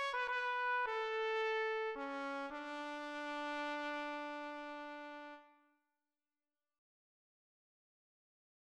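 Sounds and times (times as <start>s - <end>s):
national anthem: 0.0s - 5.5s.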